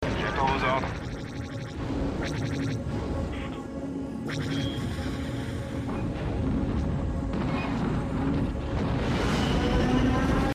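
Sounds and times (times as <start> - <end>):
Snowspeeder in flight: 0.0 - 10.5.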